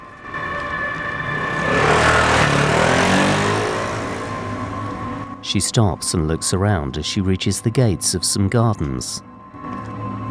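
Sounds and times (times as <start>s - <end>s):
motorcycle riding past in a narrow street: 0.3s - 5.4s
speech: 5.5s - 9.3s.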